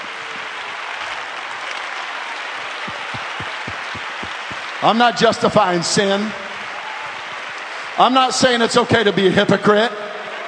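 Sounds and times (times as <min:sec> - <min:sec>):
audience clapping: 0:00.0 - 0:09.2
speech: 0:04.8 - 0:06.4, 0:08.0 - 0:10.0.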